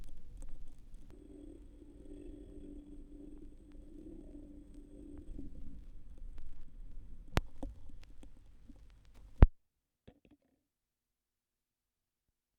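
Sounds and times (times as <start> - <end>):
vinyl record noise: 0.0 - 9.5.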